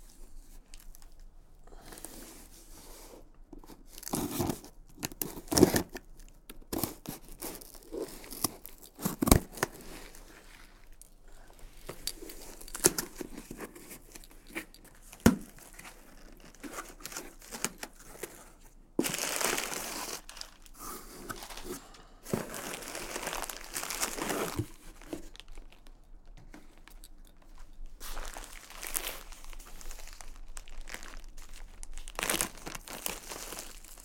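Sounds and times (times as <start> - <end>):
package being unboxed with scissors: 3.9 - 34.0.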